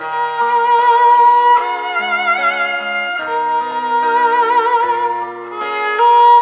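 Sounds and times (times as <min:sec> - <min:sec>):
strings: 0:00.0 - 0:06.4.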